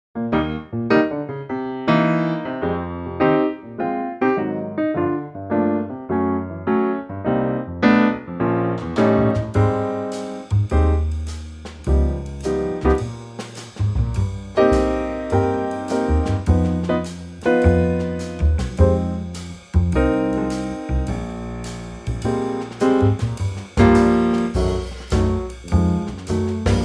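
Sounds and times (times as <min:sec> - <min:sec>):
E-flat trio backing track for male vocals: 0:00.3 - 0:26.8.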